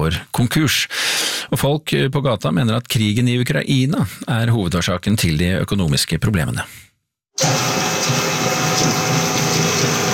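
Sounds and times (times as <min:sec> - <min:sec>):
speech: 0:00.1 - 0:09.2
mid-sized kitchen machine whirring in a small production room: 0:07.4 - 0:10.1.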